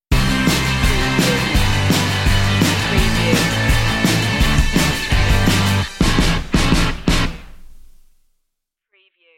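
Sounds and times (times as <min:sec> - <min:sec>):
indie party music stinger: 0:00.2 - 0:07.4.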